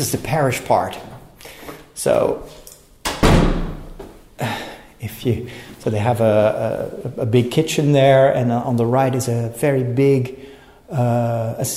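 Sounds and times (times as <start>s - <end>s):
speech: 0.0s - 1.1s, 2.0s - 2.6s, 4.4s - 11.7s
rectory door in a parish house closing and locking: 3.1s - 4.0s.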